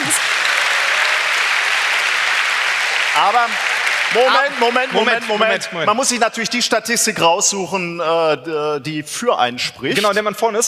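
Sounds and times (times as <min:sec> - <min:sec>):
audience applause: 0:00.0 - 0:06.2
speech: 0:03.2 - 0:10.6.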